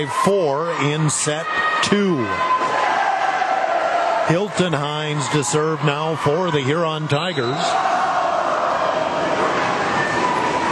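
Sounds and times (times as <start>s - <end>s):
speech: 0.0s - 2.8s, 4.3s - 8.0s
crowd voices: 0.0s - 10.7s.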